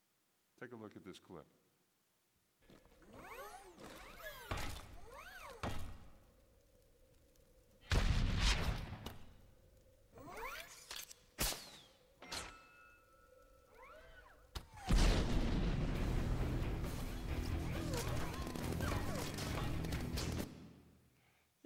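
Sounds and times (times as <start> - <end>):
speech: 0.6 - 1.8
gunfire in a film action scene: 7.8 - 9.4, 14.8 - 20.8.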